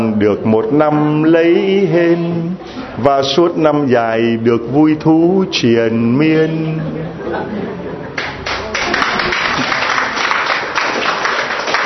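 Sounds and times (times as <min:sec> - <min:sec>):
speech: 0:00.2 - 0:07.8
laughter: 0:06.4 - 0:10.3
hands clapping during a Lunar New Year carol-singing visit: 0:08.2 - 0:11.8.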